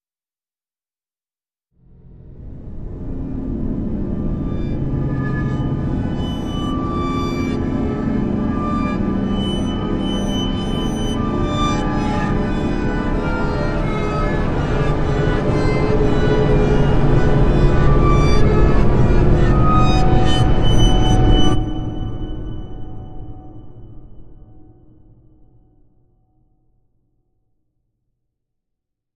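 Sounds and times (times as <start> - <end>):
suspense music: 1.9 - 25.1.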